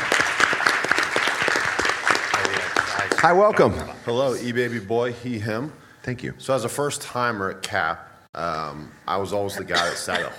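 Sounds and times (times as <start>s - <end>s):
audience applause at a CAP event: 0.0s - 3.9s
speech: 3.2s - 10.3s.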